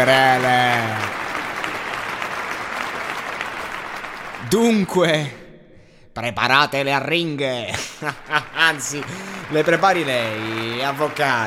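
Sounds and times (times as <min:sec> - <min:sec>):
speech: 0:00.0 - 0:01.1, 0:04.5 - 0:05.4, 0:06.2 - 0:11.4
studio audience applause: 0:00.0 - 0:05.3, 0:08.0 - 0:11.4
laughter: 0:07.7 - 0:09.8.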